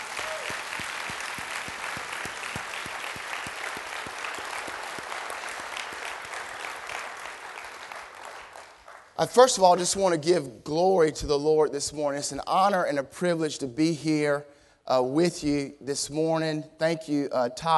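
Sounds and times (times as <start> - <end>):
audience hand clapping applause: 0.0 - 9.5
speech: 9.2 - 17.7.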